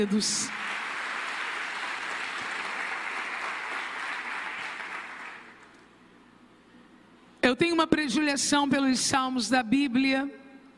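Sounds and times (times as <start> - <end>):
speech: 0.0 - 0.6, 7.5 - 10.4
audience applause: 0.0 - 5.8.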